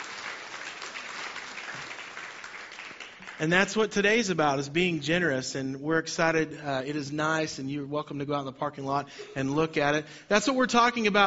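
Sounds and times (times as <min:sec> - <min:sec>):
church congregation applauding: 0:00.0 - 0:04.0
speech: 0:03.4 - 0:11.2.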